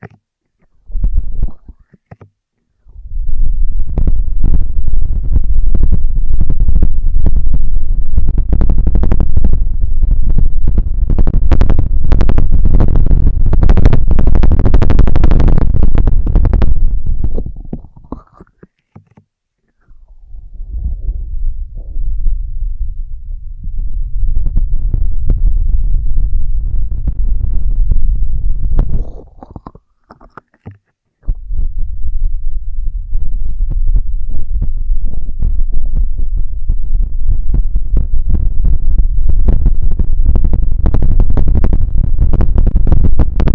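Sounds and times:
crackly rubbing and scratching ear triggers: 0.0s - 22.3s, 24.2s - 43.5s
heavy low rumble: 0.6s - 1.8s, 2.8s - 18.4s, 19.8s - 29.8s, 31.2s - 43.5s.

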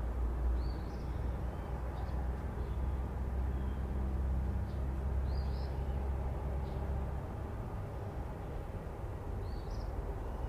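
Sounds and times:
road noise rumble: 0.0s - 10.4s.

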